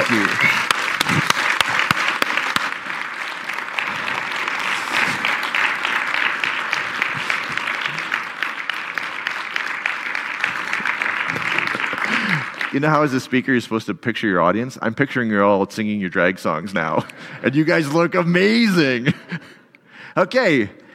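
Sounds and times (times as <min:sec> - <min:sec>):
crowd applause: 0:00.0 - 0:13.4
speech: 0:00.1 - 0:00.6, 0:12.8 - 0:19.4, 0:20.2 - 0:20.8.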